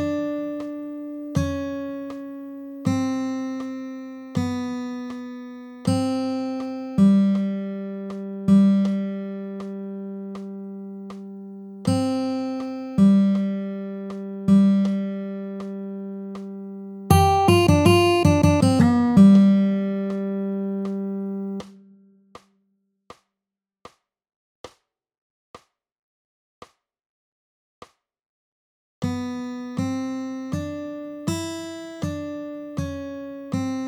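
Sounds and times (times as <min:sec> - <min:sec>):
guitar playing at 80 bpm: 0:00.0 - 0:21.9, 0:29.3 - 0:33.8.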